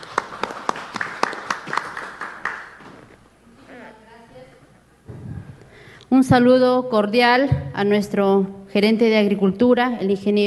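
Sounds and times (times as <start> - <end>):
audience applause: 0.0 - 3.0
speech: 6.2 - 10.4.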